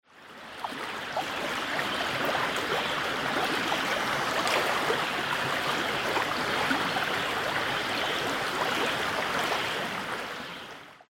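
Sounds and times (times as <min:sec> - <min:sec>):
water: 0:00.0 - 0:11.1.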